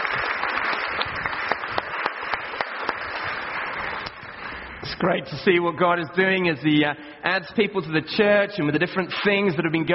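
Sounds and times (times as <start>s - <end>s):
audience applause: 0.0s - 4.7s
speech: 5.0s - 9.9s.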